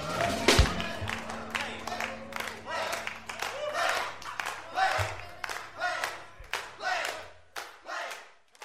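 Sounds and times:
low sustained musical tone: 0.0 - 6.8
studio crowd rhythmic shouts: 0.0 - 8.2
cheers: 0.0 - 8.6.

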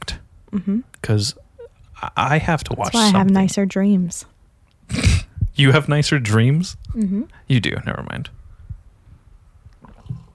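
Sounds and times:
speech: 0.5 - 1.4, 2.0 - 4.3, 5.6 - 8.4
gulp into the microphone: 4.9 - 5.4.

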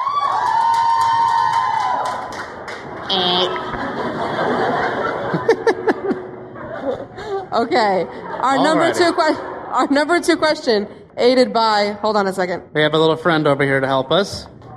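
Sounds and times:
audience laughing and cheering at a Harry Potter trivia show: 0.0 - 10.4
scattered claps: 0.4 - 4.2
crowd voices at a Harry Potter trivia show: 2.6 - 11.1
speech: 3.1 - 3.8, 7.6 - 14.5.

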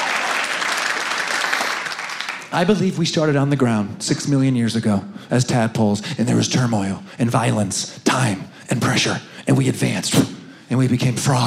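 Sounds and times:
audience applause: 0.0 - 2.6
speech: 2.5 - 11.4.

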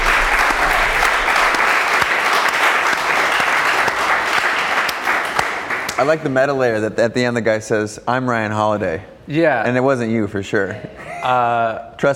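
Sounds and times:
applause from a group: 0.0 - 6.3
speech: 6.0 - 12.1.

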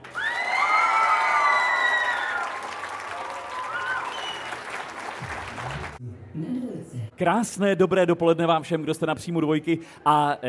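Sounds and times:
large audience applauding loudly: 0.0 - 6.0
shrill whistles: 3.6 - 4.7
speech: 7.2 - 10.4.

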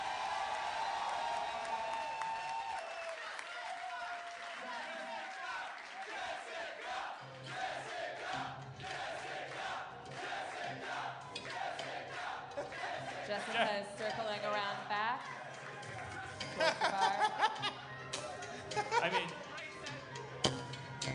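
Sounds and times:
audience cheering: 0.0 - 14.0, 14.6 - 21.0
laughter: 11.6 - 20.9.

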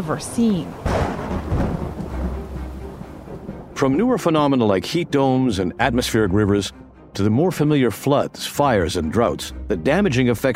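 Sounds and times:
speech: 0.0 - 1.8, 3.8 - 10.5
heavy rain: 0.0 - 4.6
thunder rumbling: 0.0 - 5.3.

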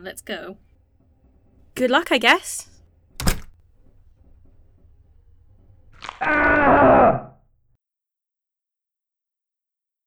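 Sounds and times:
speech: 0.0 - 0.7, 1.8 - 2.7, 6.2 - 7.3
screams during an amputation: 6.0 - 7.4.

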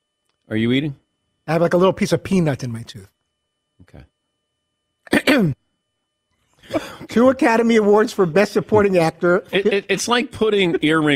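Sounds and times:
speech: 0.5 - 3.2, 3.8 - 4.1, 5.1 - 5.6, 6.7 - 11.1
person clearing throat: 5.1 - 5.6, 6.7 - 7.1
laughter: 6.7 - 7.4, 8.7 - 11.1.

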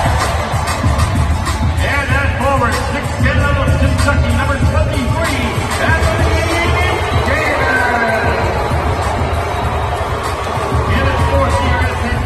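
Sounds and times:
basketball arena crowd booing and shouting: 0.0 - 12.2
murmur of many voices: 0.0 - 12.2.

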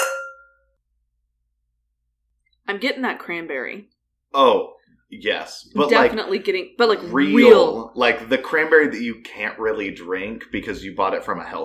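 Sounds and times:
glasses clinking in a toast: 0.0 - 0.6
speech: 2.7 - 11.6.

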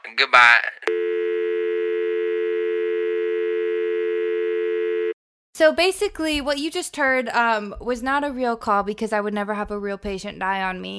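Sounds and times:
speech: 0.1 - 1.0, 5.6 - 10.9
telephone busy tone after hang-up: 0.9 - 5.2.

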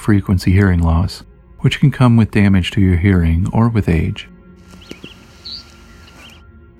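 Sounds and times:
speech: 0.1 - 4.3
cedar waxwing call: 4.6 - 6.4.

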